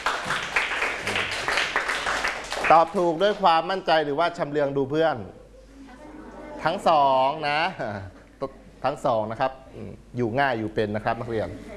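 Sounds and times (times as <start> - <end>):
students clapping for themselves: 0.0 - 3.4
speech: 2.7 - 5.4, 6.6 - 11.7.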